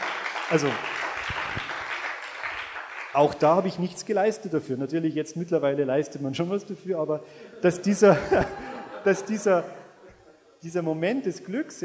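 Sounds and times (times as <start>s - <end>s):
applause: 0.0s - 3.7s
speech: 0.5s - 1.0s, 3.1s - 9.8s, 10.6s - 11.8s
laughter: 7.4s - 10.6s.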